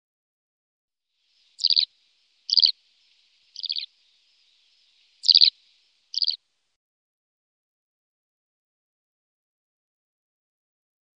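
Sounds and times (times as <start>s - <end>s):
Eurasian skylark singing bright chirps and slurred whistles: 1.4s - 1.9s, 2.5s - 6.4s.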